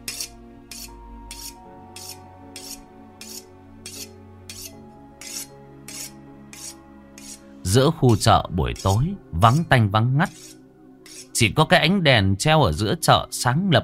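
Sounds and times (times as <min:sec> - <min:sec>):
butcher's knife sharpened on a whetstone on a meat stall: 0:00.0 - 0:09.6, 0:10.3 - 0:11.4
speech: 0:07.7 - 0:10.4, 0:11.4 - 0:13.8.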